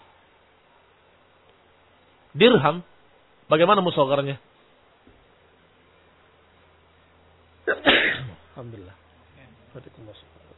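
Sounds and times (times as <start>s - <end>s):
speech: 2.3s - 2.9s, 3.5s - 4.5s, 8.6s - 9.0s, 9.7s - 10.4s
person sneezing: 7.7s - 8.4s.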